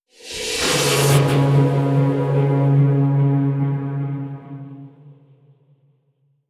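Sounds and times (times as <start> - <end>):
horror stinger: 0.3 - 5.5.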